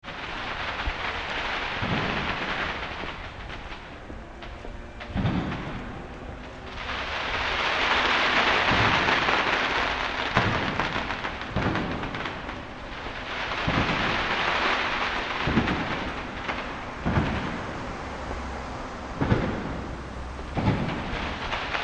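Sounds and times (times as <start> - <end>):
fireworks: 0.0 - 21.8.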